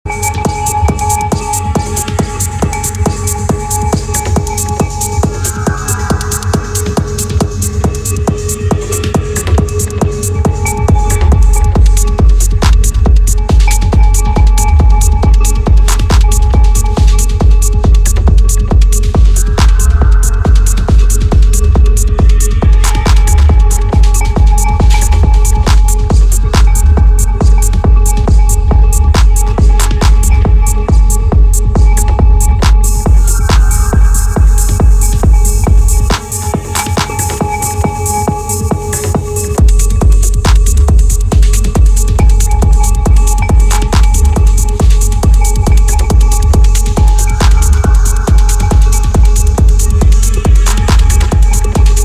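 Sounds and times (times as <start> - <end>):
chimes: 0.1 - 52.0.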